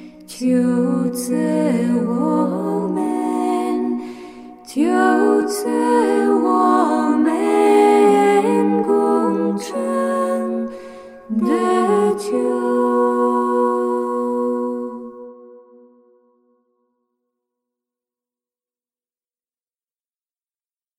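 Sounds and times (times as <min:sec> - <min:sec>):
Chinese Marian song: 0:00.0 - 0:16.3.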